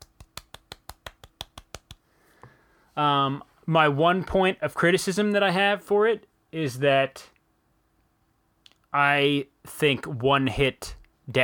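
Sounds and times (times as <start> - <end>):
golf clap: 0.0 - 2.0
speech: 3.0 - 7.3, 8.9 - 11.4.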